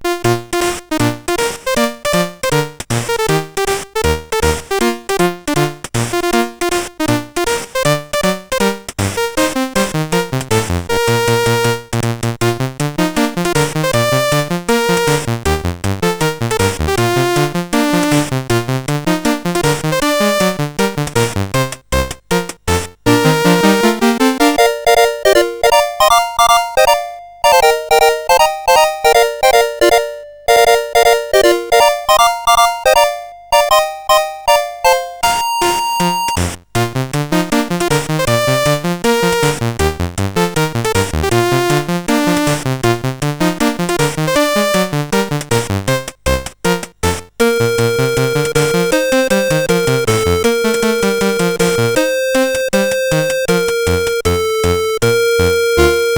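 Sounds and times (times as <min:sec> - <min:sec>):
fireworks celebration chiptune music on CSG8580R5 chip: 0:00.0 - 0:56.1.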